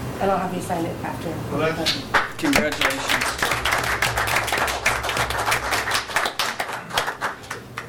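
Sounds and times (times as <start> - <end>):
speech: 0.2 - 3.5
clapping: 1.9 - 7.8.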